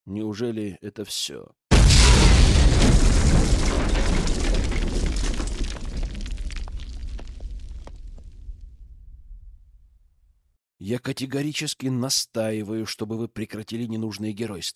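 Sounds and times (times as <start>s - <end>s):
speech: 0.1s - 1.6s, 10.8s - 14.7s
loud explosion of a charge during a battle: 1.7s - 9.8s
scattered crackles and small sharp pops: 1.7s - 9.8s.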